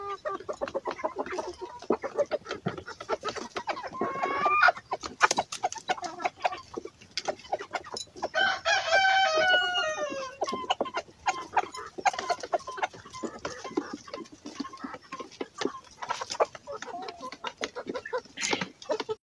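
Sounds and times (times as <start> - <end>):
chickens clucking: 0.0 - 19.2
rooster crowing: 8.4 - 10.4.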